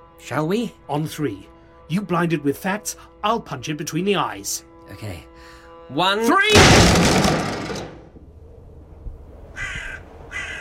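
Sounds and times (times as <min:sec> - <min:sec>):
speech: 0:00.2 - 0:07.6
crow cawing: 0:09.6 - 0:10.5.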